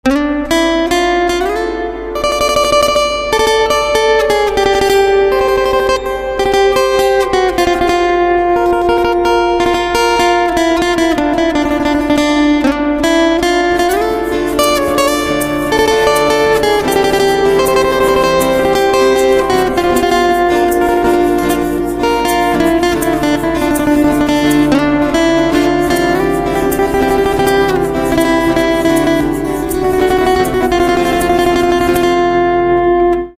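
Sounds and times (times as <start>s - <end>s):
guitar: 0.0s - 33.3s.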